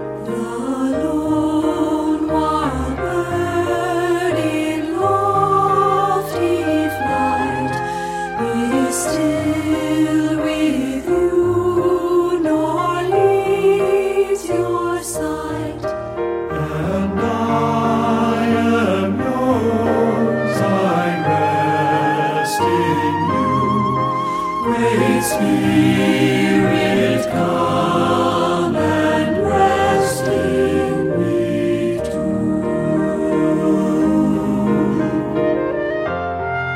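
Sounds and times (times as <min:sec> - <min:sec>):
SATB choir singing: 0:00.2 - 0:36.6.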